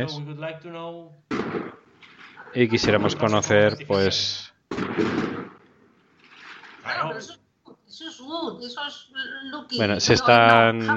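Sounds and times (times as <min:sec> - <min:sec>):
speech: 0:00.0 - 0:01.8, 0:02.5 - 0:05.4, 0:06.9 - 0:10.9
fireworks from a nearby party: 0:01.3 - 0:03.0, 0:04.7 - 0:05.6.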